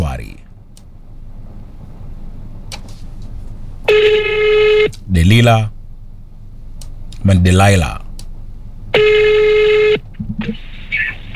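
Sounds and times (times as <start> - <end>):
telephone call tone: 3.9 - 4.9, 8.9 - 10.6
speech: 5.2 - 5.8, 7.2 - 8.0.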